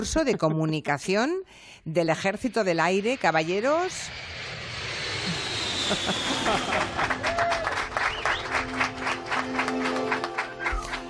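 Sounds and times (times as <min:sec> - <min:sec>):
speech: 0:00.0 - 0:04.3, 0:05.9 - 0:07.3
laughter: 0:05.3 - 0:07.6
audience applause: 0:06.3 - 0:11.0.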